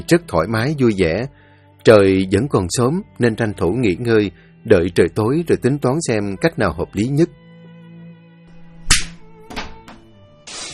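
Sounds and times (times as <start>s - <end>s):
speech: 0.0s - 7.4s
sharp loud slap of a large hand across a woman's face: 8.9s - 9.8s
short burst of hissy noise: 10.4s - 10.7s.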